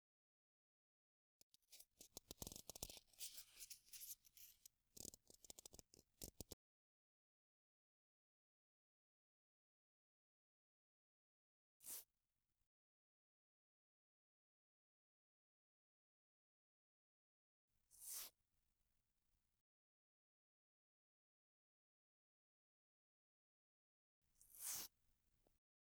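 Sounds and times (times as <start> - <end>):
cotton swab brushing ear rim and earlobe on left side: 1.8 - 6.6.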